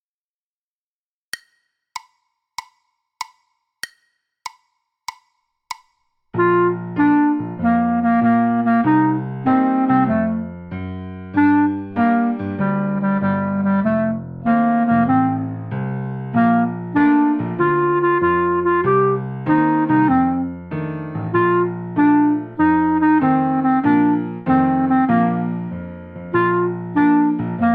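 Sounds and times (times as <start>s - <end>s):
jazz clarinet etude: 6.4s - 27.7s.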